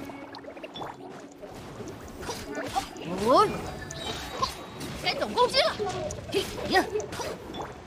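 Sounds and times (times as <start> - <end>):
pot of water boiling: 0.2 - 4.5
speech: 5.2 - 7.5.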